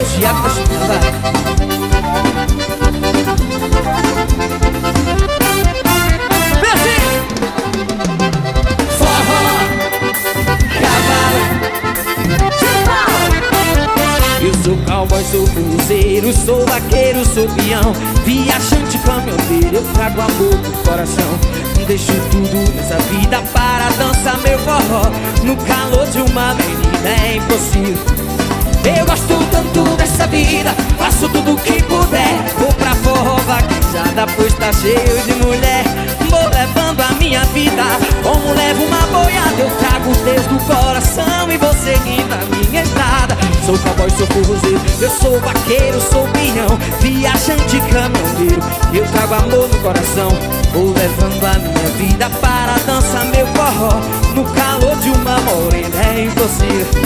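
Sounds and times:
forró music: 0.0s - 57.0s.

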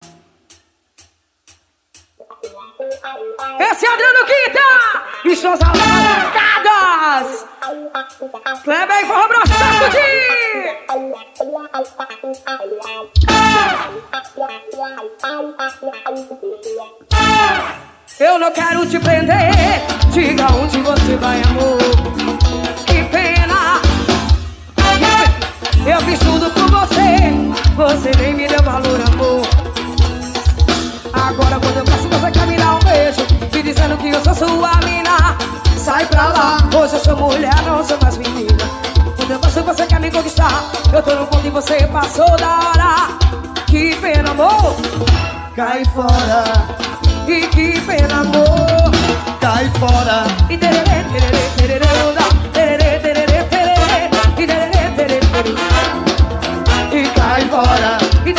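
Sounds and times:
live forro music: 0.0s - 58.3s.

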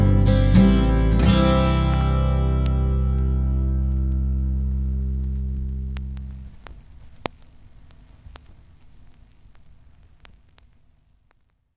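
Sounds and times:
acoustic session music: 0.0s - 7.3s.

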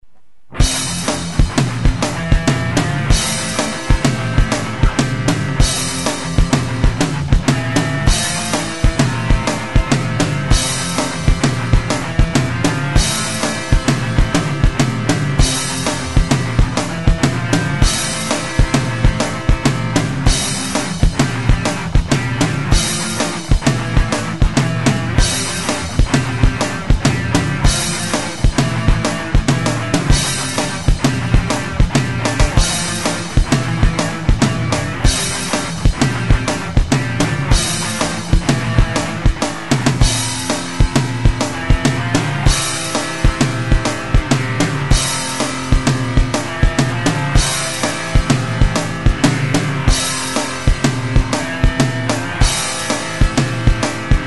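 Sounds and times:
instrumental music: 0.5s - 54.2s.

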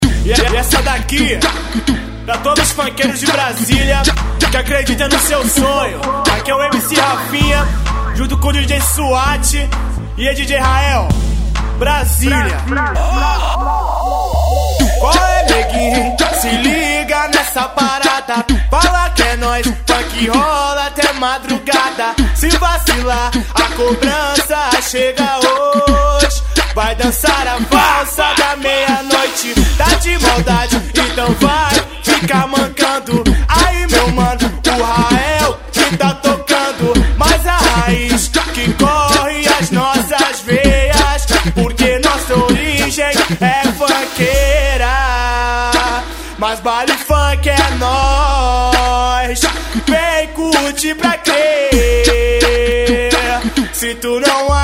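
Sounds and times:
baile funk music: 0.0s - 54.6s.

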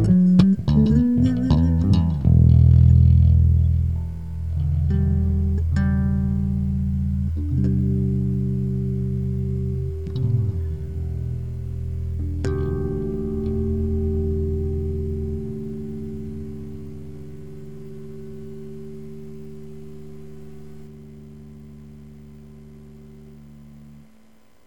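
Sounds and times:
bass groove jam: 0.0s - 24.0s.

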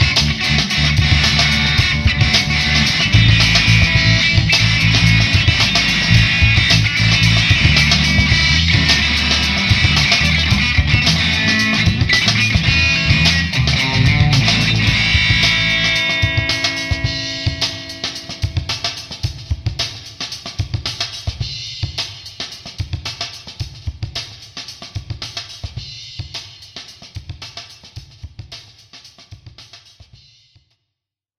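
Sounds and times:
guitar playing a song: 0.0s - 19.2s
drums: 0.0s - 30.7s.

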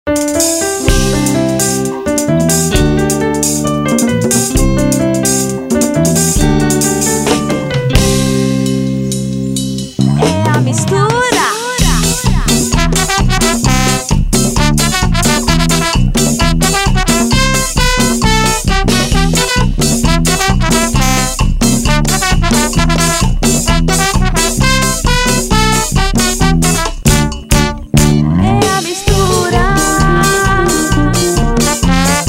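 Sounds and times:
calypso music: 0.1s - 32.2s.

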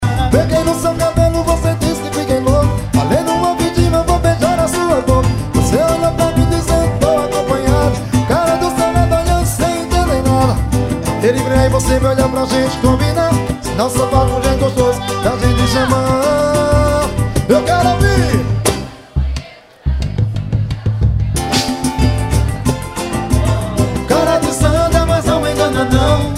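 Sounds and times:
live swing samba music: 0.0s - 26.3s.

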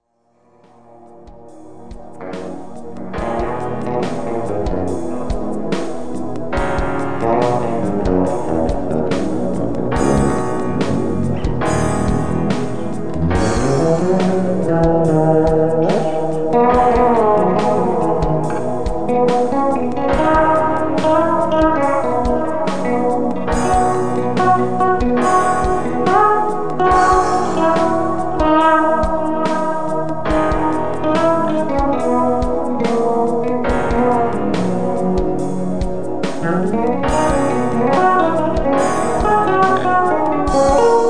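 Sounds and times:
bass solo: 2.1s - 41.0s.

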